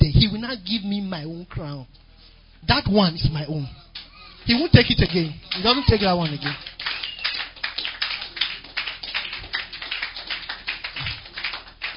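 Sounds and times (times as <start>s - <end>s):
speech: 0.0s - 2.0s, 2.6s - 3.8s, 4.5s - 6.7s
audience clapping: 3.9s - 11.9s.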